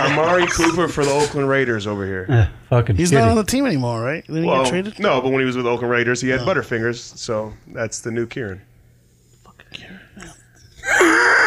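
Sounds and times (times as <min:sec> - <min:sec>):
speech: 0:00.0 - 0:08.7, 0:09.7 - 0:11.3
man wheezing: 0:10.8 - 0:11.4.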